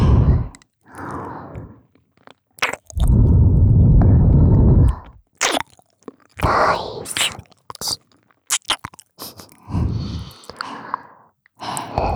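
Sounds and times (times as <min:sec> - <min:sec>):
two people licking ears at once: 0:02.6 - 0:10.9, 0:11.6 - 0:12.1.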